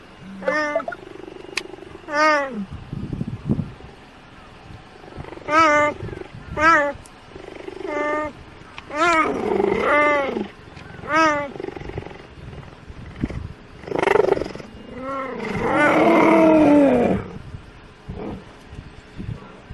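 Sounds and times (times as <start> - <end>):
cheetah calls: 0.2 - 2.7, 5.0 - 17.4
speech: 2.1 - 2.8.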